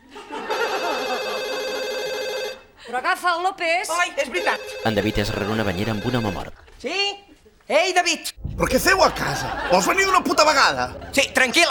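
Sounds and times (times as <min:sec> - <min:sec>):
laughter: 0:00.0 - 0:01.8, 0:08.6 - 0:11.7
telephone ringing with a steady electronic trill: 0:00.4 - 0:02.7, 0:03.9 - 0:06.6
speech: 0:02.9 - 0:11.7.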